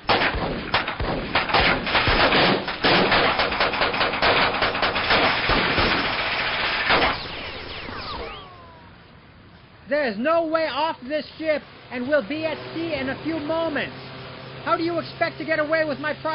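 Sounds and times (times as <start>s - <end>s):
gunshots fired at captives: 0.0s - 8.6s
speech: 10.0s - 14.0s, 14.6s - 16.3s.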